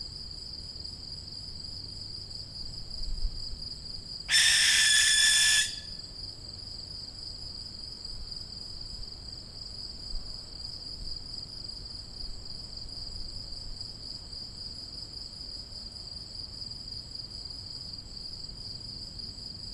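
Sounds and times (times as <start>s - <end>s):
young barn owl hissing screech: 4.3s - 6.0s.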